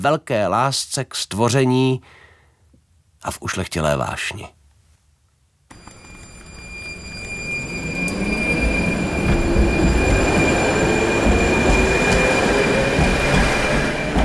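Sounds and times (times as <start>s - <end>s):
speech: 0.0s - 2.2s, 3.2s - 4.6s
tram wheels squealing at turning loop: 5.7s - 14.2s.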